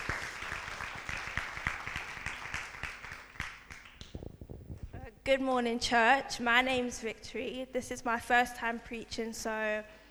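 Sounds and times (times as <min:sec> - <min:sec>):
audience applause: 0:00.0 - 0:04.1
speech: 0:05.3 - 0:10.0.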